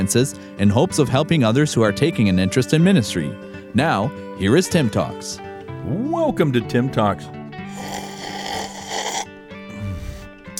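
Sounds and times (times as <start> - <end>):
speech: 0.0 - 8.0
slurping a drink from a full cup: 7.6 - 10.5.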